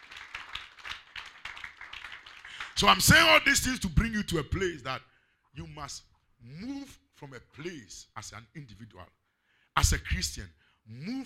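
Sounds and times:
church crowd clapping in rhythm: 0.0s - 3.2s
speech: 2.8s - 9.2s, 9.8s - 11.2s.

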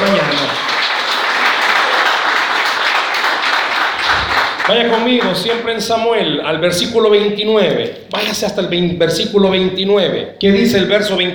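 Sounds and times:
audience applause: 0.0s - 5.7s
speech: 4.7s - 11.3s.

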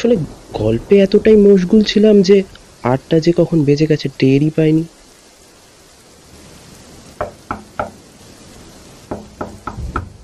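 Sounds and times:
speech: 0.0s - 5.0s
quiet hiss: 0.0s - 10.2s
sharp hollow raps on a door in a horror audio drama: 7.2s - 8.0s, 9.1s - 10.1s.

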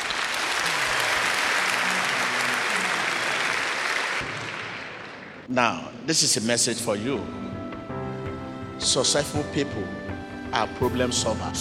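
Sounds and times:
audience clapping: 0.0s - 5.5s
speech: 5.5s - 7.6s, 8.8s - 11.5s.

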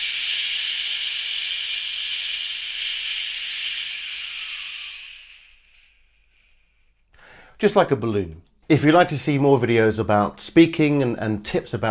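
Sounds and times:
person exhaling a long shh breathing exercise: 0.7s - 7.6s
speech: 7.6s - 11.9s.

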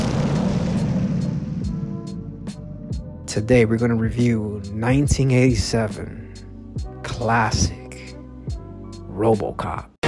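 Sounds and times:
bomb explosion sound effect: 0.0s - 3.3s
speech: 3.4s - 6.2s, 7.2s - 7.8s, 9.2s - 9.9s.

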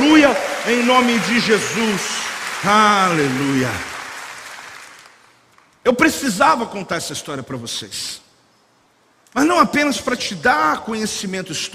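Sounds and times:
applause: 0.0s - 5.7s
speech: 0.3s - 3.9s, 5.8s - 8.2s, 9.3s - 11.7s.

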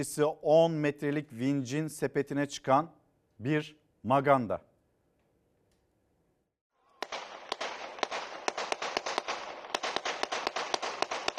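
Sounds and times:
speech: 0.0s - 4.7s
gunshots fired into the air: 7.0s - 11.3s.

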